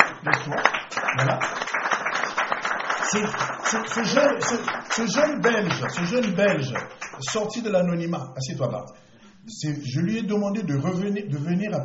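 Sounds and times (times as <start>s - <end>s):
audience applause: 0.0s - 7.5s
speech: 0.2s - 1.6s, 3.1s - 11.8s.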